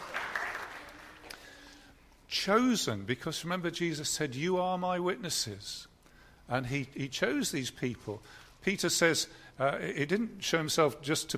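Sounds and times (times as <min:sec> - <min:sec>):
audience applause: 0:00.0 - 0:01.6
speech: 0:02.4 - 0:05.9, 0:06.5 - 0:11.3.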